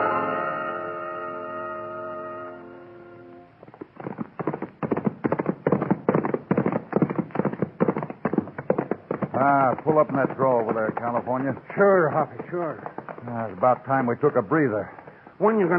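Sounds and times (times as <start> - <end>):
sustained tonal chord: 0.0 - 3.5
hoofbeats of ridden horses including Topper: 3.5 - 15.7
speech: 9.8 - 15.7.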